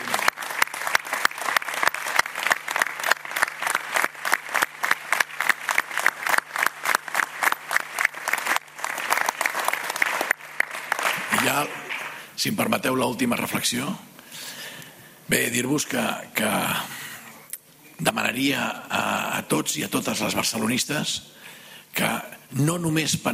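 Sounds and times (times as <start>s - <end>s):
loud applause from audience: 0.0s - 12.2s
speech: 11.6s - 11.8s, 12.4s - 14.1s, 15.3s - 16.9s, 18.0s - 18.8s, 19.4s - 21.4s, 22.0s - 23.3s.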